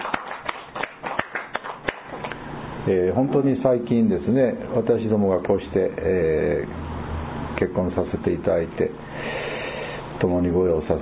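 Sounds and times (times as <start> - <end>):
audience applause: 0.0 - 2.1
sharper individual claps: 0.0 - 2.4
speech: 2.8 - 6.9, 7.6 - 9.1, 10.2 - 10.9.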